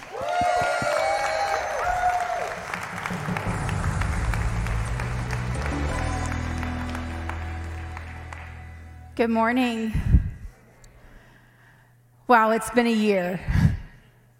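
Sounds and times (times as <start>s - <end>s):
church audience clapping to welcome the spiritual care pastor: 0.0s - 9.2s
speech: 9.2s - 10.1s, 12.3s - 13.6s.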